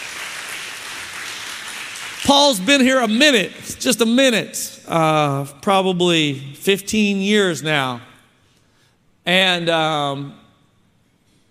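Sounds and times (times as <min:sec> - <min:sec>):
audience applause: 0:00.0 - 0:02.6
speech: 0:02.3 - 0:08.1, 0:09.2 - 0:10.4.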